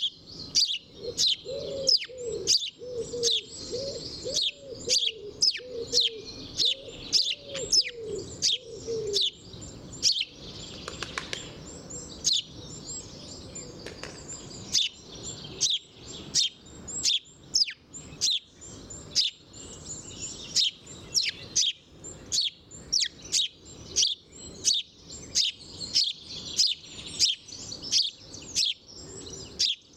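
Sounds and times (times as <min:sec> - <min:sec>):
house sparrow chirping: 0:00.0 - 0:29.9
other birds twittering: 0:00.0 - 0:29.9
dove cooing: 0:00.9 - 0:09.4.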